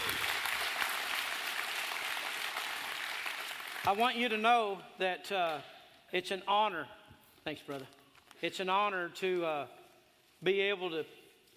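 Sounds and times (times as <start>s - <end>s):
church congregation applauding: 0.0s - 4.1s
speech: 3.8s - 9.8s, 10.4s - 11.2s.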